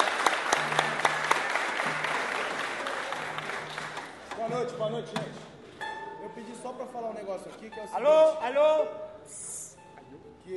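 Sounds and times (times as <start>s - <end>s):
audience applause: 0.0s - 4.5s
speech: 4.6s - 5.5s, 6.4s - 9.4s.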